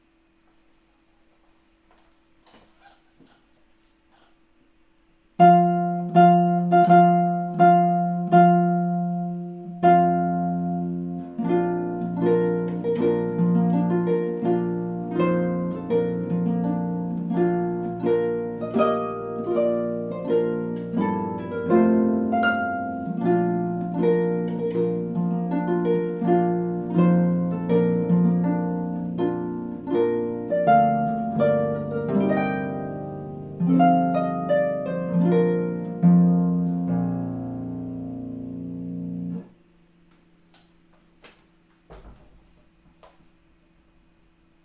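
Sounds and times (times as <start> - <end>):
harp playing: 5.4 - 40.9.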